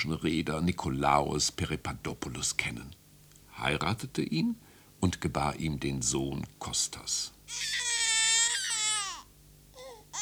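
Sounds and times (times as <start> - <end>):
speech: 0.0 - 3.0, 3.6 - 8.0
baby crying loudly: 7.5 - 10.1.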